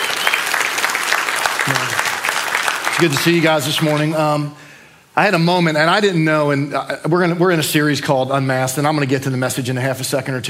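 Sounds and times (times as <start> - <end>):
audience applause: 0.0 - 4.1
speech: 3.0 - 4.6, 5.2 - 10.4.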